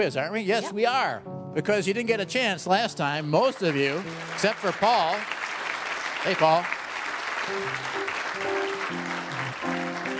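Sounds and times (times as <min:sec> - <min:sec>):
speech: 0:00.0 - 0:05.6, 0:06.2 - 0:06.8, 0:07.4 - 0:09.2
audience applause: 0:03.2 - 0:10.1.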